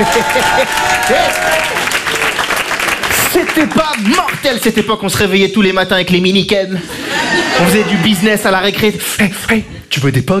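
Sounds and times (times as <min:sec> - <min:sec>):
laughter: 0:00.0 - 0:01.5, 0:06.8 - 0:08.8
crowd shouts and whoops: 0:00.0 - 0:02.0
large crowd applauding: 0:00.0 - 0:04.8
speech: 0:00.1 - 0:02.4, 0:03.4 - 0:10.3.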